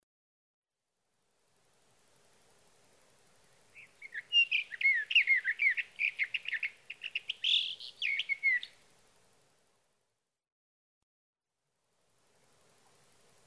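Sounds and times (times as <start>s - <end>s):
sage thrasher delivering a fast rambling warble: 3.8s - 8.7s.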